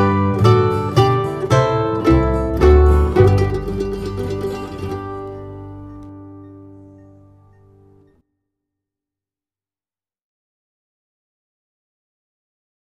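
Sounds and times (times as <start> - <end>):
Christmas bass part: 0.0 - 7.5.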